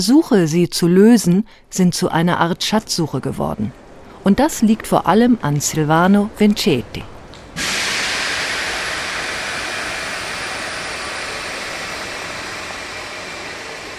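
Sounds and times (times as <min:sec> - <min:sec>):
speech: 0:00.0 - 0:07.7
loud steady rushing hiss at the train station in Reggio Emilia: 0:07.6 - 0:13.9.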